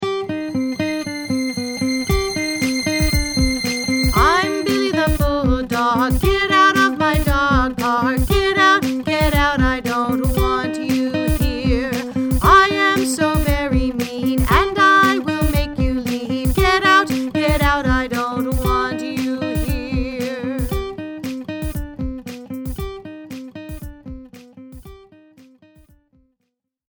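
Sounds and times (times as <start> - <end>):
person singing: 0.3 - 20.9.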